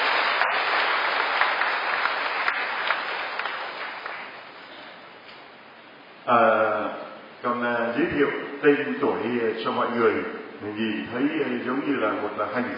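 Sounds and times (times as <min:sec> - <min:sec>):
audience applause: 0:00.0 - 0:04.5
speech: 0:06.3 - 0:06.7, 0:07.4 - 0:12.7.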